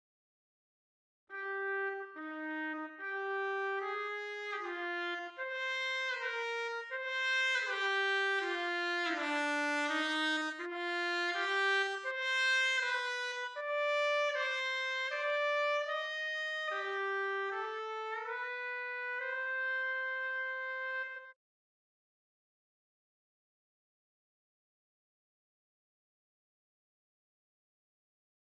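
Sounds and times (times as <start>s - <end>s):
trumpet: 1.3s - 21.4s.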